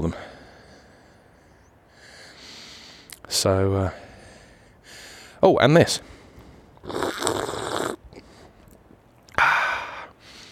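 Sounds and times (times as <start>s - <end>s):
speech: 0.0s - 0.3s, 3.3s - 4.0s, 5.4s - 6.2s
slurping coffee: 6.8s - 8.0s.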